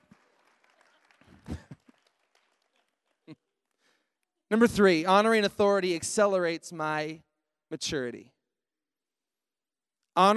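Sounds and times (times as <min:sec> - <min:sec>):
audience clapping: 0:00.0 - 0:04.3
speech: 0:04.5 - 0:08.3, 0:10.2 - 0:10.3.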